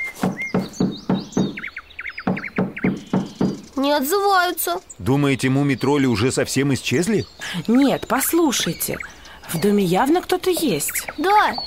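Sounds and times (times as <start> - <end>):
knocking on a door: 0.2 - 3.7
speech: 3.8 - 11.6.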